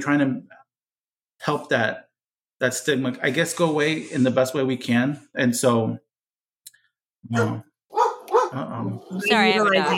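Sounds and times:
speech: 0.0 - 0.6, 1.4 - 6.0, 7.2 - 7.7, 8.5 - 9.9
dog barking: 7.3 - 8.7, 9.8 - 9.9.

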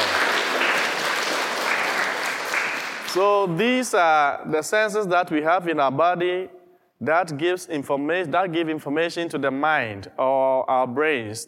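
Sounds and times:
children clapping for themselves: 0.0 - 3.2
speech: 3.1 - 11.4.

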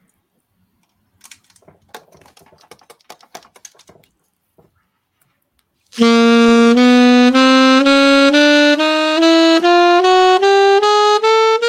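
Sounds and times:
one-octave chromatic scale played on a reedy instrument: 6.0 - 11.6.

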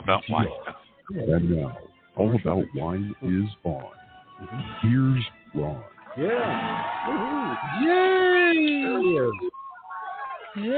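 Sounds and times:
speech: 0.1 - 9.6, 10.6 - 10.7
crowd cheering: 6.0 - 10.7.

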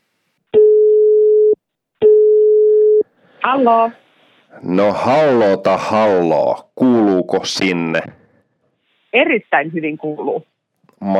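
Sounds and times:
telephone call ringing: 0.6 - 3.0
speech: 3.4 - 8.2, 9.2 - 11.1.

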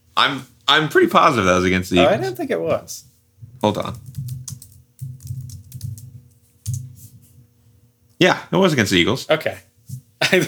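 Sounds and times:
speech: 0.2 - 4.2, 8.2 - 10.4
typing a search on a computer keyboard: 3.7 - 6.9.

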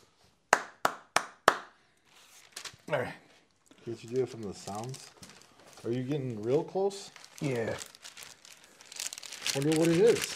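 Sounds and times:
single hand clap for audio sync: 0.5 - 1.8
speech: 2.9 - 3.2, 3.9 - 7.9, 9.5 - 10.3.

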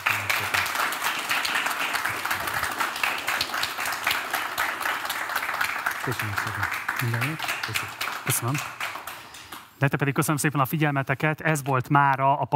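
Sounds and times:
audience applause: 0.0 - 9.7
speech: 6.0 - 8.8, 9.8 - 12.5.

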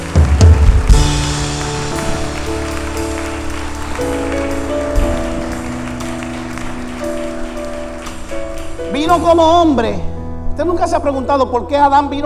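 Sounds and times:
loud audience applause: 0.0 - 9.3
sustained keyboard chords: 0.0 - 12.2
speech: 9.1 - 12.2.

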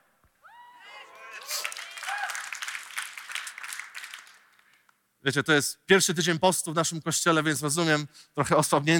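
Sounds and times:
subdued church audience applause: 1.2 - 4.9
speech: 5.2 - 8.9.

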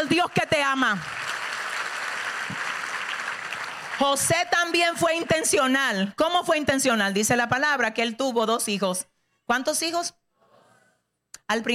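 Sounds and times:
speech: 0.0 - 1.2, 4.0 - 10.2, 11.5 - 11.7
audience applause: 0.2 - 5.5.

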